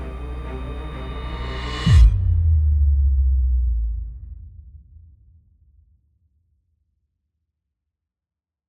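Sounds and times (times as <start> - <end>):
epic trailer music: 0.0 - 4.3.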